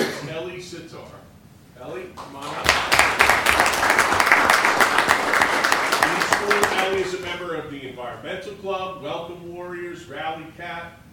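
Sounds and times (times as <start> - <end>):
speech: 0.4 - 5.0, 6.4 - 11.0
group clapping for a high school Student of the Month: 2.2 - 7.5.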